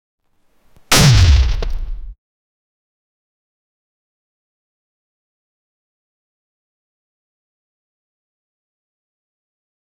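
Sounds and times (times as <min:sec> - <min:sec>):
video game falling down after jumping sound: 0:00.9 - 0:02.2.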